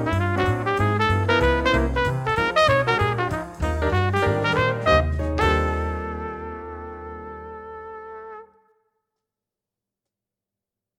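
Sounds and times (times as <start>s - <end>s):
trumpet playing fast swing jazz: 0.0s - 8.7s.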